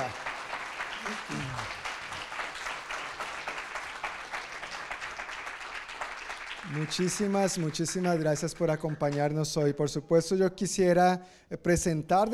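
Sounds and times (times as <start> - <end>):
audience applause: 0.0 - 9.2
low voice murmur: 1.0 - 2.1
speech: 6.7 - 12.3.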